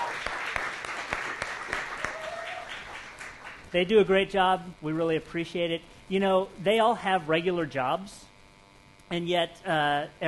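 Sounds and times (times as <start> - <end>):
crowd applauding: 0.0 - 3.6
speech: 3.7 - 8.3, 9.1 - 10.2.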